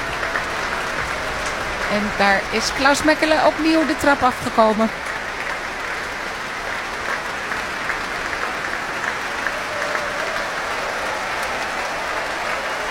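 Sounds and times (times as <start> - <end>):
concert hall applause from the orchestra musicians: 0.0 - 12.8
speech: 1.9 - 5.1.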